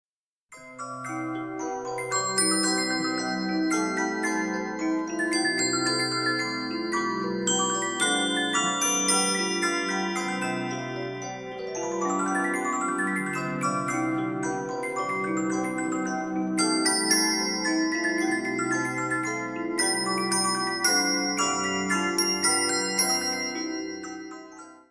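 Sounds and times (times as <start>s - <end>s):
music box: 0.5s - 24.9s.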